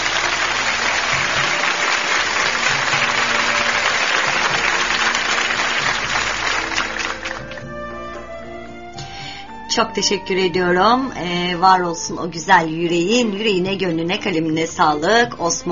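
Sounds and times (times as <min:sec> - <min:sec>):
applause: 0:00.0 - 0:07.7
speech: 0:09.8 - 0:15.6.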